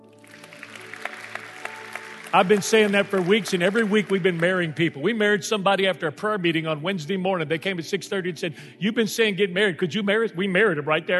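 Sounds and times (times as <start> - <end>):
audience clapping: 0.0 - 5.3
speech: 2.3 - 11.1.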